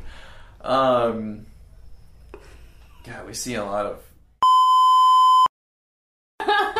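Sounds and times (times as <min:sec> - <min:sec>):
speech: 0:00.6 - 0:01.5, 0:03.0 - 0:04.1
censor bleep tone: 0:04.4 - 0:05.5.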